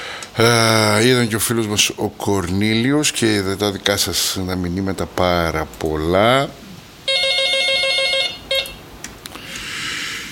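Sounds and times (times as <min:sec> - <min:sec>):
hiss of open telephone line: 0:00.0 - 0:07.2, 0:08.5 - 0:10.3
speech: 0:00.4 - 0:06.6
bright trilling electronic telephone ring: 0:07.1 - 0:08.8
telephone line clicks: 0:08.5 - 0:09.6.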